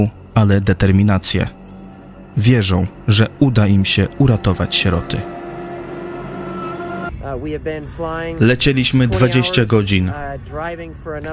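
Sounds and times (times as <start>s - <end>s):
speech: 0.0s - 1.6s, 2.4s - 5.4s, 7.3s - 11.3s
car driving along a road: 0.0s - 7.1s.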